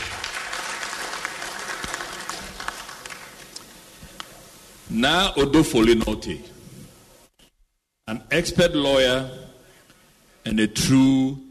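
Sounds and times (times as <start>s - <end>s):
audience applause: 0.0s - 3.6s
speech: 4.9s - 6.5s, 8.3s - 9.4s, 10.4s - 11.4s.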